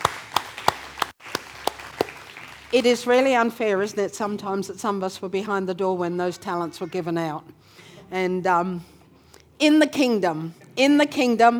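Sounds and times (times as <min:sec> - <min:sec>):
audience applause for musicians: 0:00.0 - 0:02.9
speech: 0:02.7 - 0:09.0, 0:09.6 - 0:11.5.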